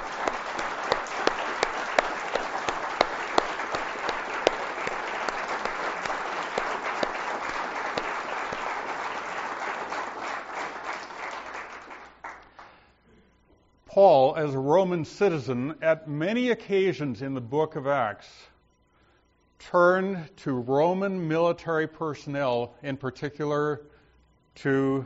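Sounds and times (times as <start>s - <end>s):
audience applause: 0.0s - 12.6s
speech: 14.0s - 18.5s, 19.7s - 23.9s, 24.6s - 25.0s.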